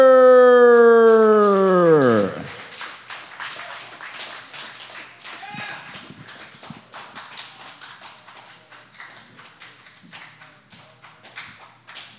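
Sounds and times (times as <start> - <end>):
long tone sliding steadily downward: 0.0 - 2.6
open mic audience applauding a poet: 1.0 - 12.1.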